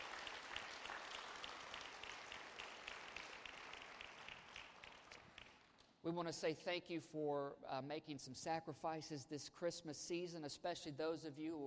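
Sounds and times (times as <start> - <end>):
audience hand clapping: 0.0 - 6.0
speech: 6.0 - 11.6.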